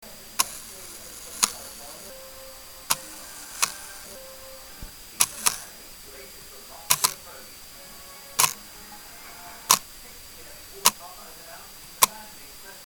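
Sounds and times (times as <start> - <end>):
camera shutter: 0.3 - 2.2, 2.8 - 4.2, 4.9 - 5.8, 6.7 - 7.5, 8.4 - 8.6, 9.7 - 9.9.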